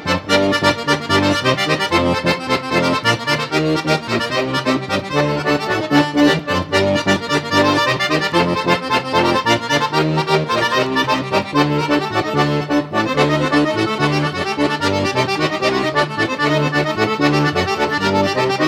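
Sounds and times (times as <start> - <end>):
accordion trio playing: 0.0 - 18.6.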